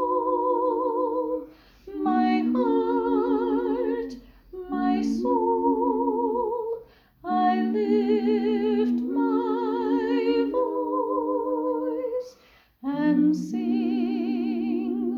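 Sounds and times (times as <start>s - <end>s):
soprano and alto learning tracks: 0.0s - 15.1s.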